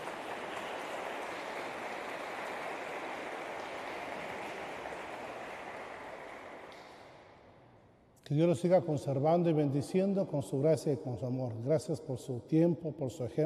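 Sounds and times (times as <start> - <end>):
audience applause: 0.0 - 6.8
speech: 8.3 - 13.4.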